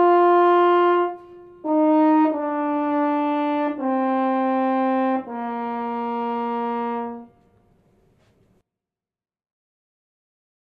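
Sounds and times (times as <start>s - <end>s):
horn: 0.0s - 8.4s.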